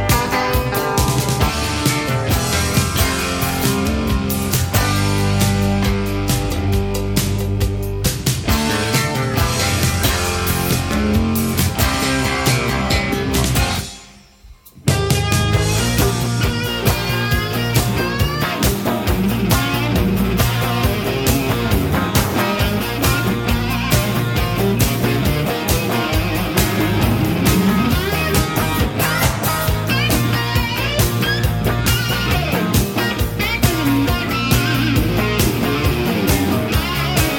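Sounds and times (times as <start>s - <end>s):
heavy rock guitars: 0.0s - 37.3s.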